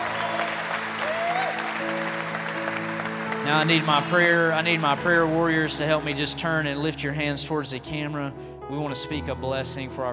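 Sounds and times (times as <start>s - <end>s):
audience cheering and clapping: 0.0s - 6.6s
sustained musical tones: 1.8s - 9.0s
speech: 3.5s - 10.1s.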